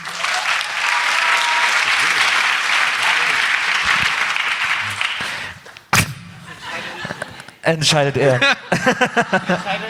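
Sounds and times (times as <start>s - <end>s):
audience applause: 0.0s - 5.8s
laughter: 6.3s - 9.8s
speech: 7.7s - 9.8s.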